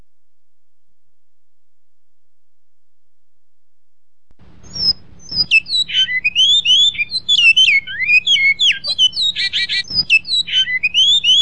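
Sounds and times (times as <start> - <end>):
great-billed seed finch whistling song with buzzy rattle: 4.6 - 11.4.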